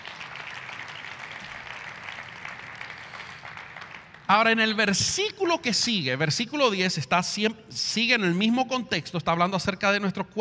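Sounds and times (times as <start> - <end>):
audience applauding: 0.0 - 4.6
speech: 4.3 - 10.3.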